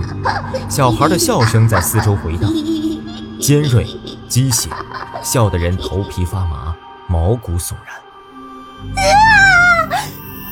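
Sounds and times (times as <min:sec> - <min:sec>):
speech: 0:00.2 - 0:02.8, 0:03.4 - 0:08.0, 0:08.8 - 0:09.4
girl screaming in a Chinese horror audio drama: 0:09.0 - 0:10.1.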